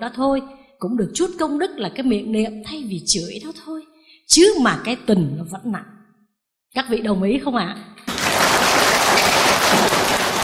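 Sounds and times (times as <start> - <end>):
speech: 0.0 - 6.0, 6.7 - 7.9, 9.7 - 10.2
Buddhist dharma talk listeners clapping: 8.1 - 10.4.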